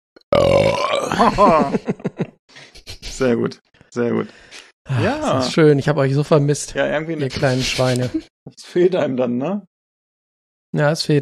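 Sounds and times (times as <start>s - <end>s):
loud rumbling burp after drinking milk: 0.3s - 1.4s
speech: 0.3s - 2.0s, 3.2s - 9.7s, 10.7s - 11.2s
laughter: 1.0s - 4.2s, 7.1s - 8.3s.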